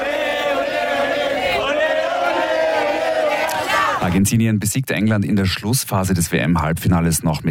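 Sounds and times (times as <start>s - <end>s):
Argentinian football fans cheering: 0.0s - 4.3s
speech: 4.0s - 7.4s.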